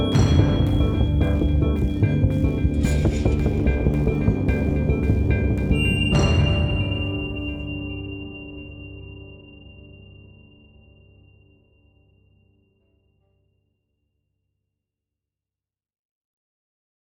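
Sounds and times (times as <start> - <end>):
action loop: 0.0 - 7.8.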